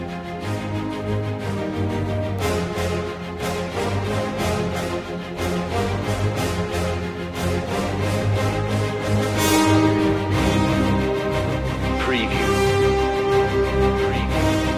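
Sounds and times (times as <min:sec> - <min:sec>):
brass: 0:00.0 - 0:14.7
strings: 0:00.0 - 0:14.7.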